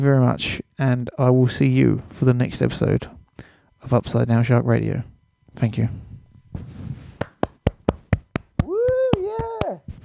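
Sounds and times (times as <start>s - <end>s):
speech: 0.0s - 3.2s, 3.8s - 6.7s
one person clapping hands: 7.2s - 9.8s.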